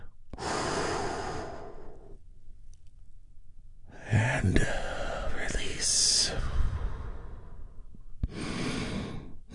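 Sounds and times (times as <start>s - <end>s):
big deep healing breath during a guided relaxation: 0.3s - 2.2s, 4.7s - 5.4s, 6.2s - 9.4s.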